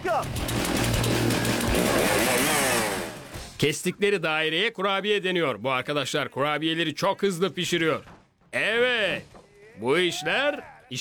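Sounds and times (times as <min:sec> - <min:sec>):
stock chainsaw cutting through a log: 0:00.3 - 0:03.4
speech: 0:03.6 - 0:11.0.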